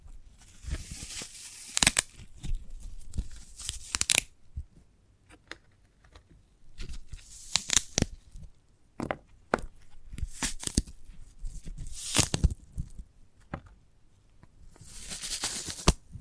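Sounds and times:
fibrous husk of a sprouted coconut tearing: 0.5 - 4.3, 6.9 - 8.2, 10.1 - 10.9, 11.6 - 12.9, 14.9 - 16.0.

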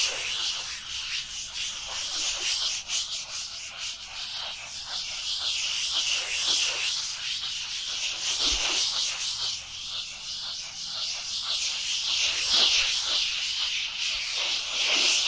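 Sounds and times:
dry hands rubbing together: 0.0 - 15.2.

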